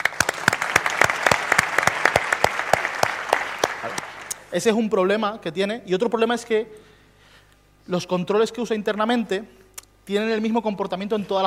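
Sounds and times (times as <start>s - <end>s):
audience applause: 0.0s - 4.4s
speech: 4.5s - 6.9s, 7.9s - 11.4s.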